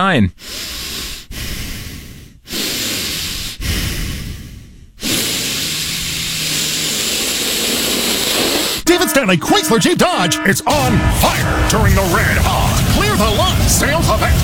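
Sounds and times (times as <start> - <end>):
speech: 0.0 - 0.7, 9.2 - 14.4
heavy nose breathing into an unmuted microphone during a team meeting call: 0.3 - 10.4.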